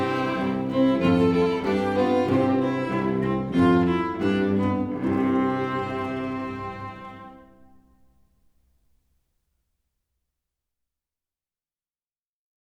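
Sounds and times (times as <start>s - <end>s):
instrumental music: 0.0s - 8.2s.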